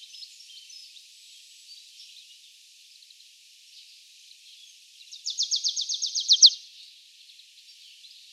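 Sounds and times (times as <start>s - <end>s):
marsh tit calling: 5.3s - 6.6s.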